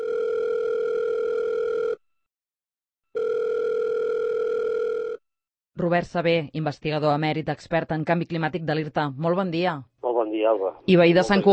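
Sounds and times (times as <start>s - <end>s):
telephone tone of an outgoing call: 0.0s - 2.0s, 3.2s - 5.2s
speech: 5.8s - 11.5s.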